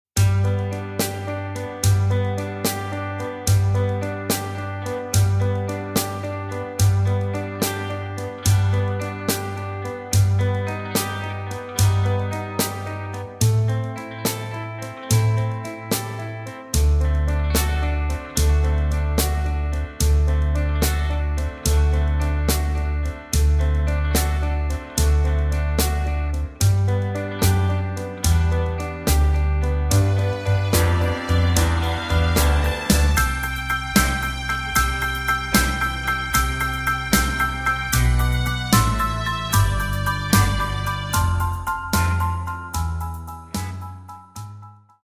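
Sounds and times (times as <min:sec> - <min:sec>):
backing track music without backing vocals: 0:00.2 - 0:45.0.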